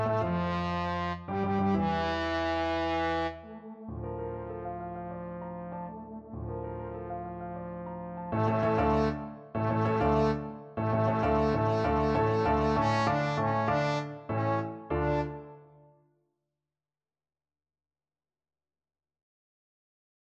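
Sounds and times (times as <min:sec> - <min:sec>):
trombone playing symphonic music: 0:00.0 - 0:06.3, 0:08.4 - 0:15.5.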